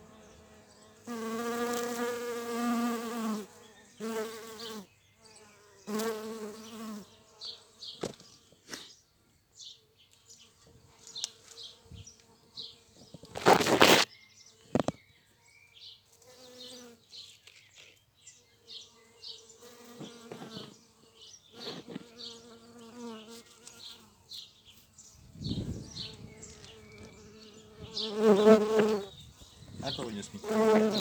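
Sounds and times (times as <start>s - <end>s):
bee flight buzz: 0.0s - 8.0s, 18.7s - 31.0s
soft rustling: 13.1s - 14.1s.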